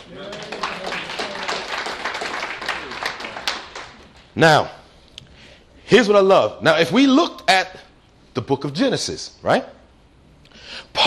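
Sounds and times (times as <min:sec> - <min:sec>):
audience applause: 0:00.0 - 0:04.1
speech: 0:04.4 - 0:04.8, 0:05.9 - 0:07.8, 0:08.4 - 0:09.8, 0:10.7 - 0:11.0.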